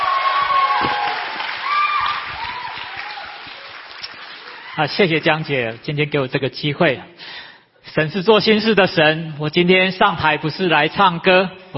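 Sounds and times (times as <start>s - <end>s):
warm audience applause: 0.0s - 5.8s
speech: 4.8s - 7.3s, 7.9s - 11.7s.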